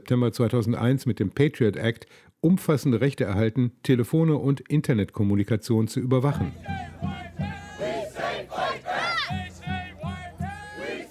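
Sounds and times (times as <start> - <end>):
speech: 0.1 - 7.5
protest crowd chanting at demonstration: 6.4 - 11.0.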